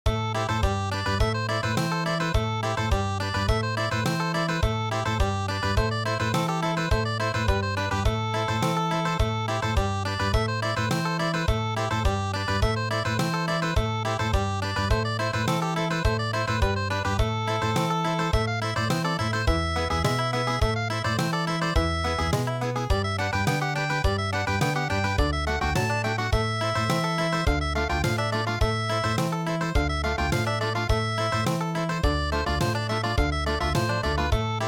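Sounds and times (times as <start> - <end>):
country music: 0.1 - 34.6.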